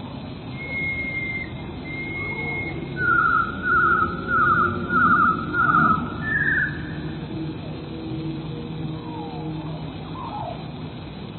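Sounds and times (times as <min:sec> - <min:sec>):
Eurasian blue tit singing: 0:00.5 - 0:07.2.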